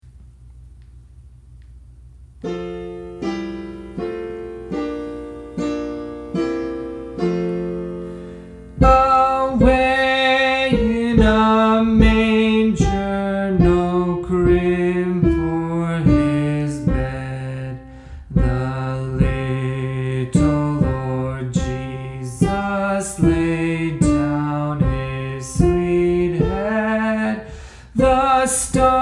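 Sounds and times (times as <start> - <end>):
soprano singing: 2.5 - 29.0.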